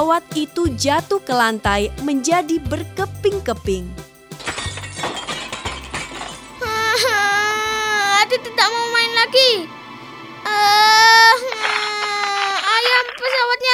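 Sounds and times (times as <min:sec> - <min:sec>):
speech: 0:00.0 - 0:04.0, 0:10.6 - 0:11.4
child crying: 0:06.6 - 0:08.7, 0:10.5 - 0:13.7.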